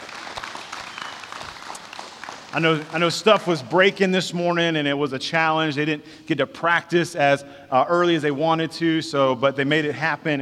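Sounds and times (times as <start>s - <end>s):
church congregation applauding the worship team: 0.0s - 4.8s
speech: 2.5s - 10.4s.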